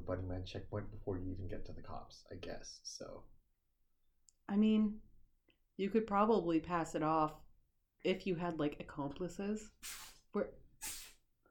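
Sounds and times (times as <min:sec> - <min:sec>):
speech: 0:00.1 - 0:03.4, 0:04.5 - 0:05.1, 0:05.8 - 0:07.4, 0:08.0 - 0:11.0
cat sneezing: 0:09.8 - 0:10.2, 0:10.8 - 0:11.2.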